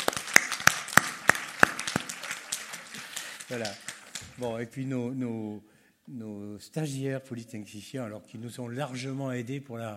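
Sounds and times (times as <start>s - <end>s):
audience applause: 0.0s - 4.5s
speech: 3.5s - 9.9s.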